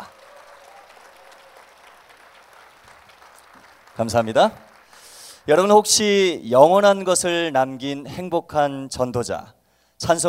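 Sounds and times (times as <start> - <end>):
crowd applauding: 0.0 - 5.8
speech: 4.0 - 4.6, 5.5 - 10.2.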